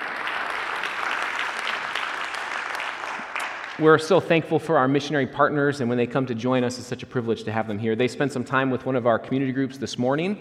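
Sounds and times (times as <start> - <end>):
audience applauding: 0.0 - 4.0
speech: 3.8 - 10.3.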